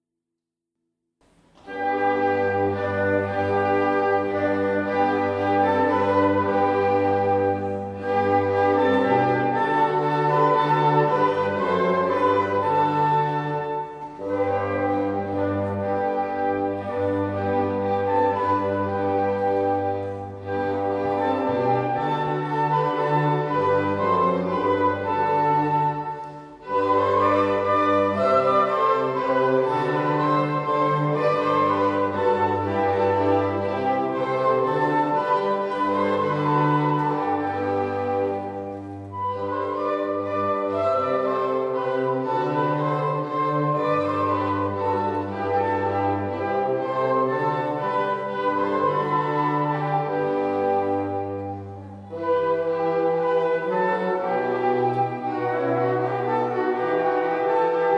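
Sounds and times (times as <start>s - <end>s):
ensemble playing a minuet: 1.5s - 57.9s.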